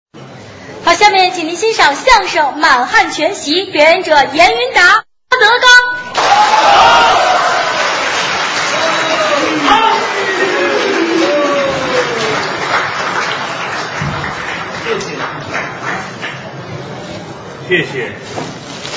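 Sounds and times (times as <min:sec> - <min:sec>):
speech: 0:00.9 - 0:07.3, 0:17.7 - 0:18.5
audience applause: 0:06.2 - 0:16.6.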